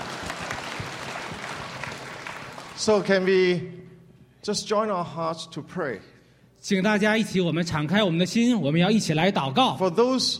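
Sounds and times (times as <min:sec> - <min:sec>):
church audience applauding an interpreter: 0:00.0 - 0:03.3
speech: 0:02.8 - 0:03.8, 0:04.4 - 0:10.3.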